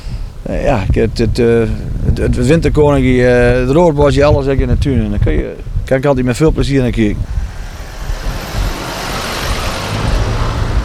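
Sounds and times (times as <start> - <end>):
speech: 0.5 - 7.4
road noise: 6.4 - 10.8
jeep engine rumbling while driving: 6.7 - 10.8.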